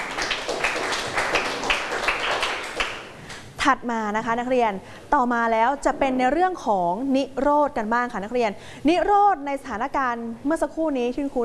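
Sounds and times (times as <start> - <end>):
students clapping hands: 0.0 - 3.5
speech: 3.6 - 11.4.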